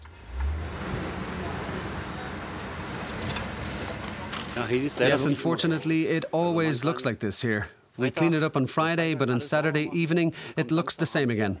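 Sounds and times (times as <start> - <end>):
car engine hum while driving and turning: 0.0 - 5.0
road rumble: 0.0 - 5.2
speech: 4.6 - 11.5.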